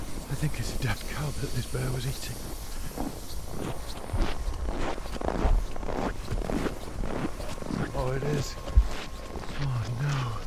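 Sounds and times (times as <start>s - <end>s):
speech: 0.4s - 4.4s
footsteps walking across sea ice: 2.4s - 10.4s.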